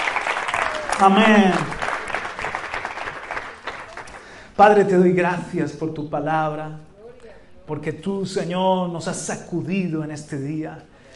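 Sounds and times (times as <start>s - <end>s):
audience applauding: 0.0s - 4.6s
speech: 1.0s - 1.8s, 4.6s - 6.9s, 7.7s - 10.9s.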